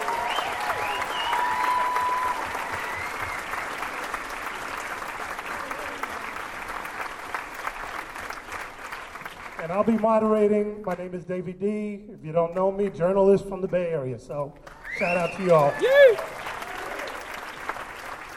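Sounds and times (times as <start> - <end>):
audience applauding for panel guests: 0.0 - 10.7, 14.6 - 18.3
speech: 9.7 - 16.3.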